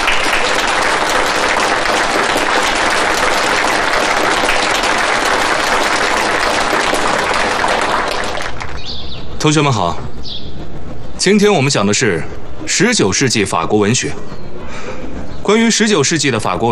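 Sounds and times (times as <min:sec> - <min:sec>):
audience applause: 0:00.0 - 0:08.9
speech: 0:09.4 - 0:10.4, 0:11.2 - 0:14.8, 0:15.5 - 0:16.7.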